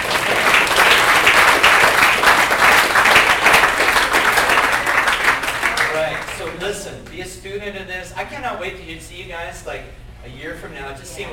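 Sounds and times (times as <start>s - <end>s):
audience hand clapping: 0.0s - 6.7s
speech: 7.7s - 11.3s.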